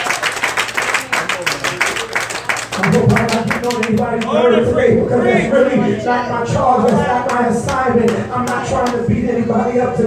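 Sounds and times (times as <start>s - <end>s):
audience clapping hands: 0.0s - 4.3s, 6.9s - 9.0s
speech: 3.7s - 10.0s.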